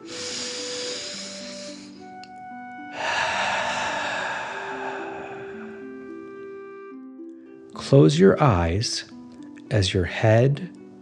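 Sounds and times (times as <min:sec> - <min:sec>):
deep breathing in and out: 0:00.0 - 0:02.1, 0:02.8 - 0:06.7
soft sustained musical tones: 0:00.0 - 0:11.0
speech: 0:07.9 - 0:09.1, 0:09.7 - 0:10.8.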